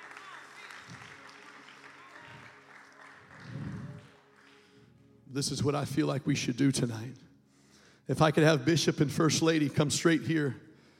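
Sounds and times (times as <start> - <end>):
audience clapping hands: 0.0 - 5.0
speech: 5.4 - 7.3, 8.1 - 10.7.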